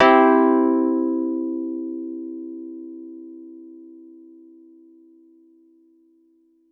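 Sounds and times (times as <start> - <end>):
Wurlitzer electric piano major chords played hard: 0.0 - 1.7.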